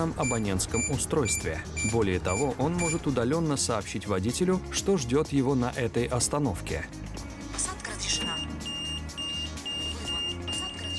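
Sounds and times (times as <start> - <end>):
speech: 0.0 - 7.2
transit door audio beacon beeping: 0.2 - 3.1, 8.2 - 10.9.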